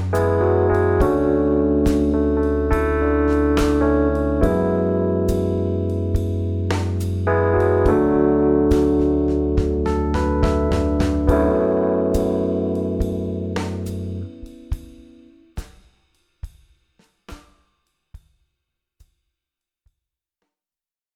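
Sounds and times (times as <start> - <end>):
suitcase electric piano with tremolo: 0.0 - 15.4.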